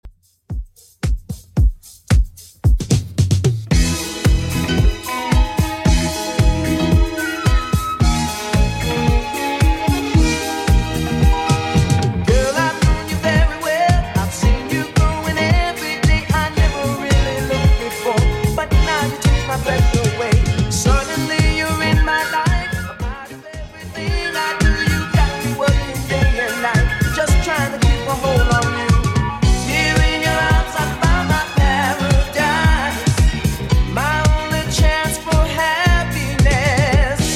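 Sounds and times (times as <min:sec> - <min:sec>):
1970s style music at 112 bpm: 0:00.1 - 0:37.3.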